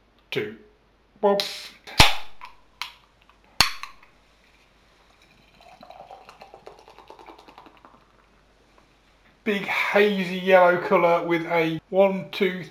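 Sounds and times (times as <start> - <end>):
speech: 0.3 - 1.6, 9.5 - 12.6
sharp metallic cracks: 1.4 - 4.1
beer glugging from a can into a glass: 5.1 - 8.3.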